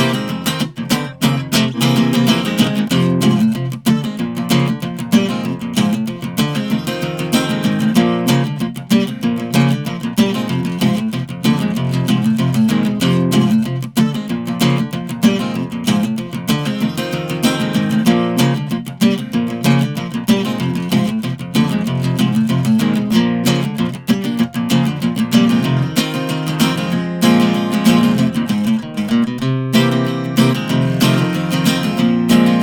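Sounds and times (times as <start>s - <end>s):
drunken guitar playing: 0.0s - 32.6s.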